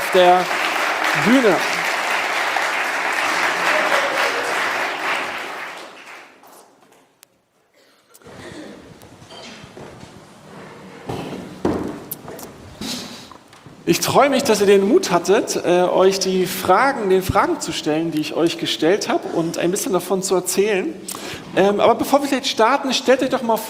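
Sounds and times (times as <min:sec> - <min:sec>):
audience applause: 0:00.0 - 0:06.7
speech: 0:00.1 - 0:00.6, 0:01.2 - 0:01.9, 0:14.0 - 0:23.6.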